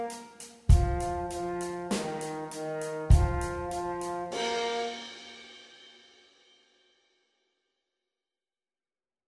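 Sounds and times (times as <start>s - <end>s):
rock horn blowing: 0.0s - 5.4s.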